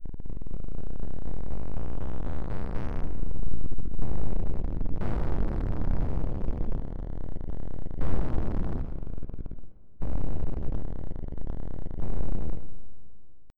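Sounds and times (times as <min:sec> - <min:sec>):
rumble: 0:00.0 - 0:13.5.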